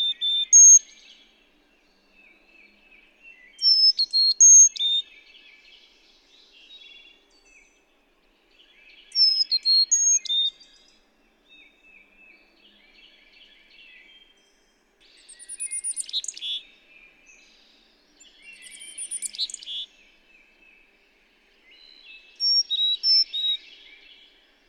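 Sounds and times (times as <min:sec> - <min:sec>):
bird song phrase of clear whistled notes: 0:00.0 - 0:01.2, 0:03.3 - 0:05.6, 0:08.9 - 0:10.9, 0:15.1 - 0:17.6, 0:18.2 - 0:20.0, 0:21.6 - 0:24.2.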